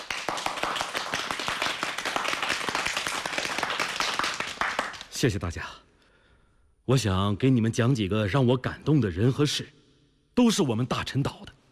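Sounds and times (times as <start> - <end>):
audience clapping: 0.0 - 5.2
speech: 5.2 - 5.9, 6.9 - 9.8, 10.4 - 11.5.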